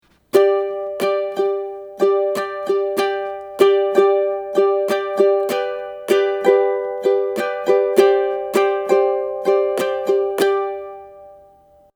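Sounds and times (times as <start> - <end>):
ukulele strumming: 0.0 - 11.9.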